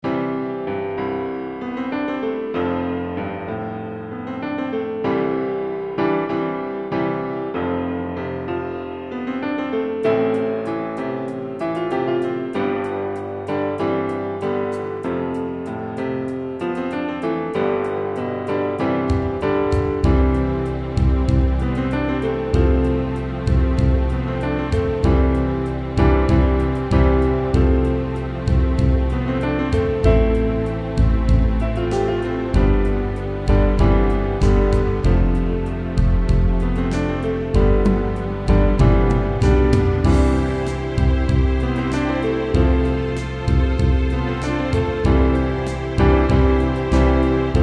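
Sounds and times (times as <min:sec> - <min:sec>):
ambient marching piano music: 0:00.0 - 0:47.6.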